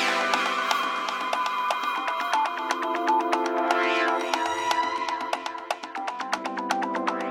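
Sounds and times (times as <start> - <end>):
African beats ringtone: 0.1 - 7.2.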